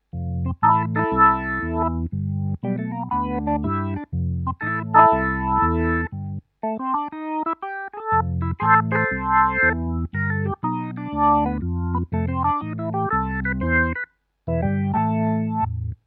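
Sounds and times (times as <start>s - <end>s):
Kurzweil Forte SE Classic B3 organ: 0.1s - 16.0s.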